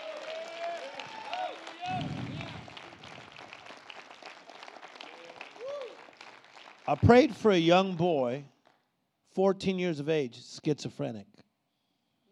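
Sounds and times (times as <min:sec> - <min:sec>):
people clapping hands: 0:00.0 - 0:08.9
speech: 0:06.9 - 0:08.5, 0:09.4 - 0:11.3.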